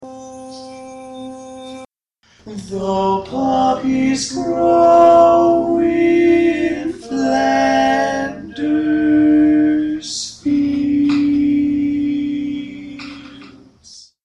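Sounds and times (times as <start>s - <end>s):
tenor singing barbershop tags: 2.5s - 13.8s.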